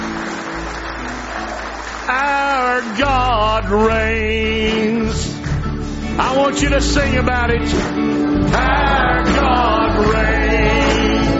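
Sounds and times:
church congregation clapping hands in praise during a morning service: 0.0s - 6.8s, 7.7s - 11.3s
speech: 2.1s - 5.3s, 6.2s - 10.3s.

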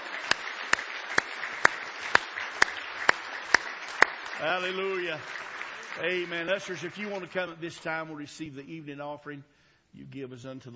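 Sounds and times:
audience clapping hands in praise: 0.0s - 8.1s
speech: 4.4s - 10.7s.

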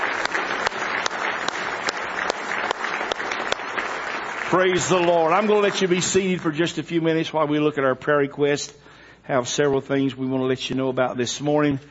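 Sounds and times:
audience clapping: 0.0s - 6.9s
speech: 4.5s - 11.9s.

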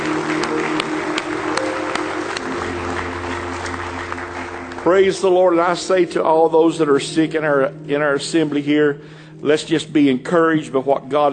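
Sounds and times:
audience hand clapping: 0.0s - 6.2s
speech: 4.8s - 11.3s.

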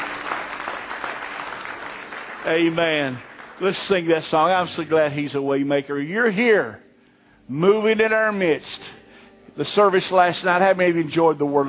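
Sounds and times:
congregation hand clapping at a church service: 0.0s - 5.2s
speech: 2.4s - 6.8s, 7.5s - 9.0s, 9.6s - 11.6s.

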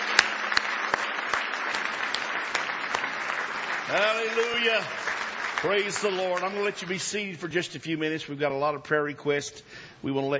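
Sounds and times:
audience hand clapping applause: 0.0s - 7.6s
speech: 3.9s - 10.3s.

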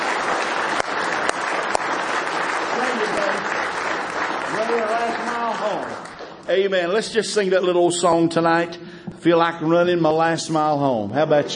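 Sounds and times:
audience hand clapping applause: 0.0s - 7.7s
speech: 5.7s - 11.5s.

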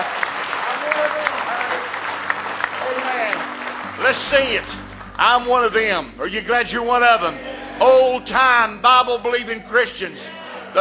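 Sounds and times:
church congregation clapping in praise: 0.0s - 7.3s
speech: 4.1s - 10.8s.

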